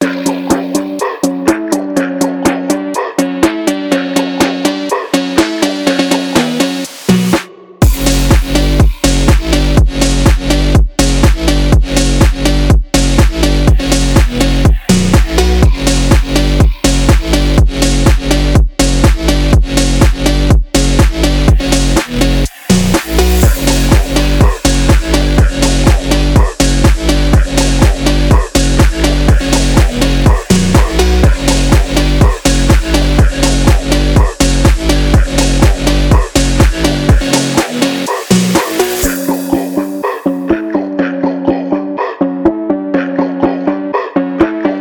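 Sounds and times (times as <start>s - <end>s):
Brazilian phonk music: 0.0s - 44.7s.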